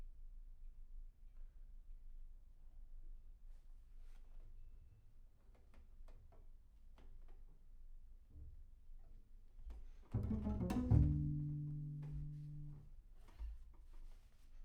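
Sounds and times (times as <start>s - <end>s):
bass sound: 10.2s - 12.9s.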